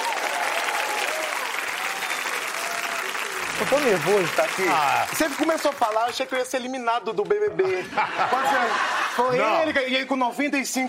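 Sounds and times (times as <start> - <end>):
audience applause: 0.0 - 6.6
speech: 3.6 - 10.8
laughter: 7.6 - 9.9.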